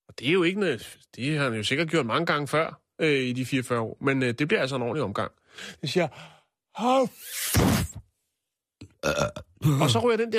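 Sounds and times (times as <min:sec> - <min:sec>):
speech: 0:00.2 - 0:08.1, 0:09.0 - 0:10.3
voice imitating a loud sneeze: 0:07.1 - 0:08.0.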